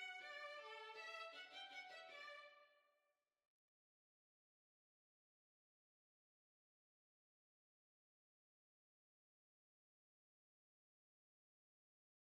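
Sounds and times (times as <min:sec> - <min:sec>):
violin playing a hornpipe: 0:00.0 - 0:02.5.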